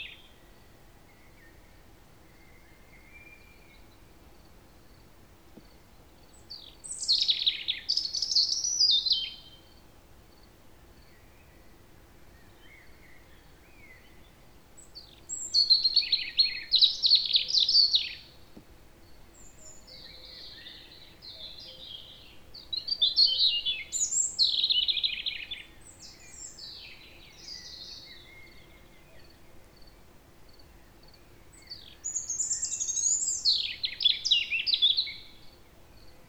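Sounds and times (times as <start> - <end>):
European robin song: 6.2 - 9.8, 11.0 - 29.4, 30.6 - 36.1.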